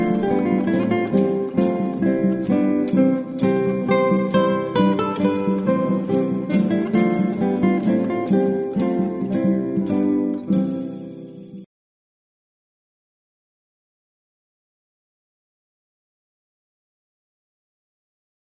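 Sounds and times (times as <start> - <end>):
renaissance dance tune: 0.0 - 11.6.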